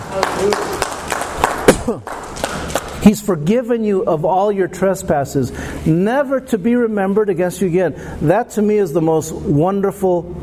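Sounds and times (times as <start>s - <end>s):
audience clapping: 0.0s - 3.0s
speech: 0.2s - 0.8s, 1.9s - 2.2s, 3.0s - 10.4s.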